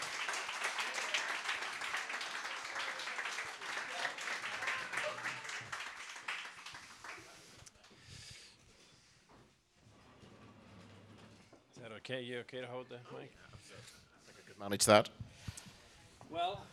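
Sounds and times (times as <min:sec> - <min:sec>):
crowd applauding: 0:00.0 - 0:07.7
speech: 0:12.1 - 0:14.0, 0:14.6 - 0:15.2, 0:16.3 - 0:16.7.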